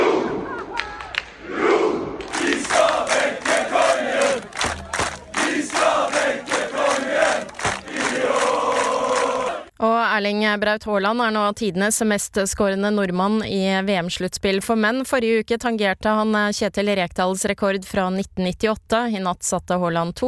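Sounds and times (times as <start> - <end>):
football fans chanting: 0.0 - 9.7
football fans cheering and shouting in the street: 1.8 - 9.7
thumps: 7.5 - 7.9
speech: 10.2 - 20.2.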